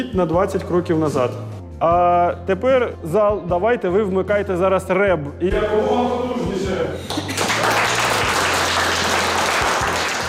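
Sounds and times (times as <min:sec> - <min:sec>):
speech: 0:00.0 - 0:07.2
students applauding loudly: 0:07.1 - 0:10.2.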